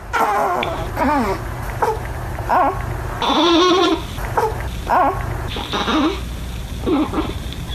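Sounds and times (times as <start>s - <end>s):
newborn baby noises: 0.0s - 7.7s.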